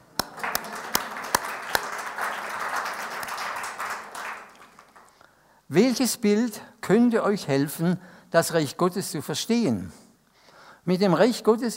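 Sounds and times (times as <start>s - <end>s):
audience applause: 0.0s - 5.2s
speech: 5.7s - 10.0s, 10.8s - 11.7s.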